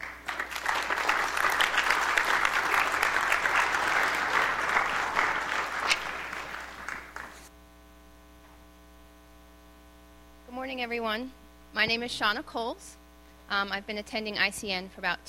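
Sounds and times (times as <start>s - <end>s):
audience applause at a church gathering on Asian American ministry: 0.0s - 7.5s
speech: 10.8s - 15.2s.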